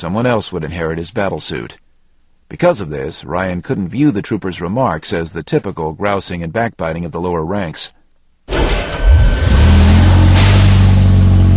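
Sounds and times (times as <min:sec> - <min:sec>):
speech: 0:00.0 - 0:01.9, 0:02.5 - 0:08.7
armored war wagon engine revving as it gets underway: 0:08.5 - 0:11.5.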